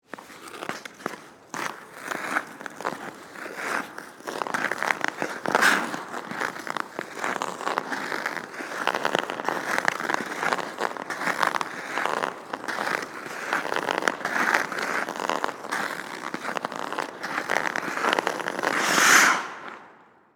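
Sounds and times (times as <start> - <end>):
ice skates on an indoor ice rink: 0.0 - 20.3.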